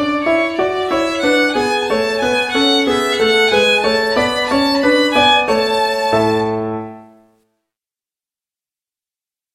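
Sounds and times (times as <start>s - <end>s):
violin: 0.0s - 7.3s
piano: 0.0s - 7.5s.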